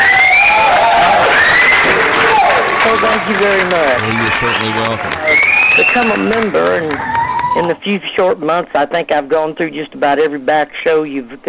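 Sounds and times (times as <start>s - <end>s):
high whoops from the studio audience: 0.0s - 3.0s, 4.0s - 7.8s
studio audience cheering and applauding for a caller: 0.0s - 7.8s
speech: 3.3s - 11.4s.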